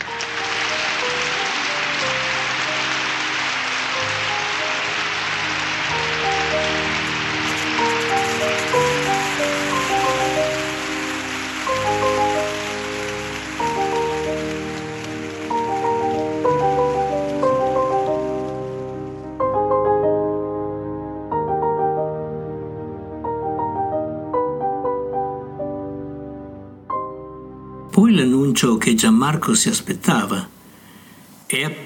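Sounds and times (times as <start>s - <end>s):
audience applause: 0.0s - 19.0s
melodic music: 0.0s - 31.0s
speech: 28.6s - 30.5s.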